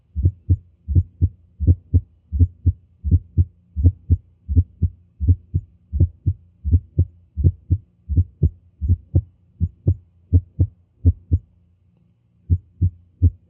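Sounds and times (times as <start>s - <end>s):
atrial heart sounds through stethoscope: 0.0s - 11.4s, 12.5s - 13.4s
faint hum: 0.0s - 13.4s.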